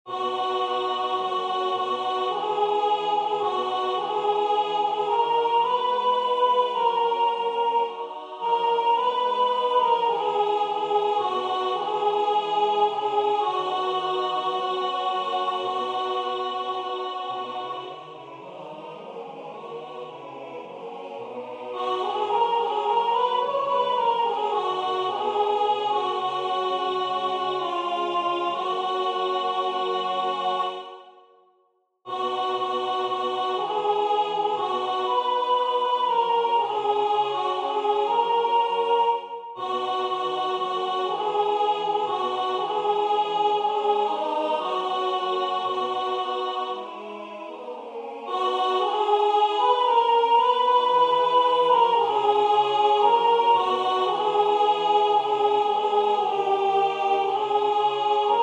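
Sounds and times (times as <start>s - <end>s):
soprano singing: 0.1s - 31.0s, 32.1s - 58.4s.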